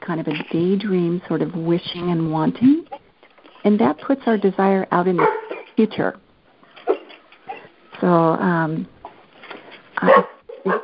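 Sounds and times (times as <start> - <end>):
speech: 0.1 - 2.9, 3.6 - 6.2, 8.0 - 8.9, 10.0 - 10.8
dog barking over a phone line: 5.2 - 5.7, 10.0 - 10.8.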